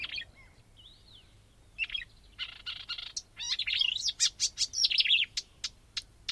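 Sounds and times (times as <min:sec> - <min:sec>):
marsh warbler song: 0:00.0 - 0:06.3.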